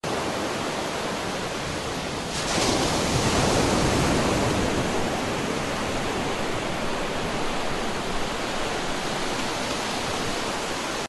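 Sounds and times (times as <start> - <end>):
ocean: 0.0 - 11.0.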